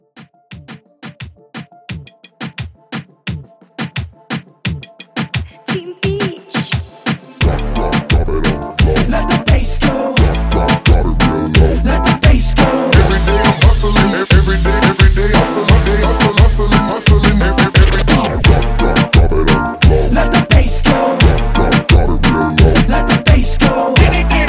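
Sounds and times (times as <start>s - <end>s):
dirty moombahton beat at 87: 0.0s - 24.4s.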